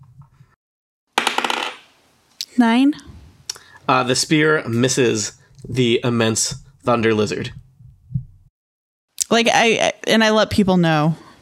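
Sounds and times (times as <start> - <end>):
dice being rolled: 1.2 - 1.9
speech: 2.6 - 3.1, 3.9 - 7.6, 9.3 - 11.2.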